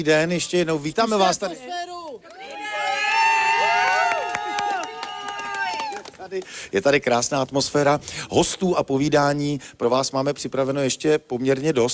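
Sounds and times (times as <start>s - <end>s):
speech: 0.0s - 2.4s, 6.3s - 11.9s
live radio audience cheering and whooping: 2.3s - 6.2s.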